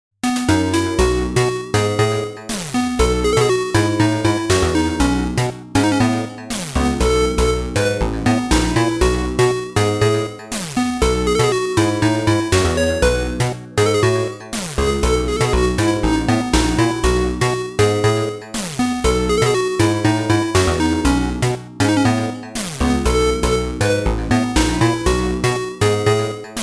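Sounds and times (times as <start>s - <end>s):
8-bit music: 0.2s - 26.6s.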